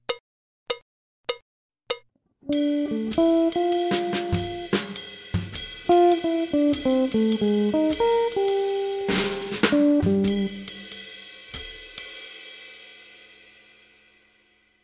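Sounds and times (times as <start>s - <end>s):
free improvisation on prepared instrument: 1.3s - 12.7s.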